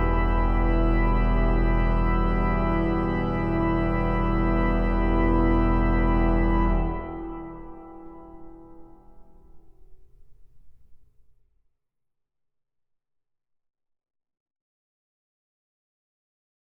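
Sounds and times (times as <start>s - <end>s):
prelude and fugue: 0.0s - 9.8s.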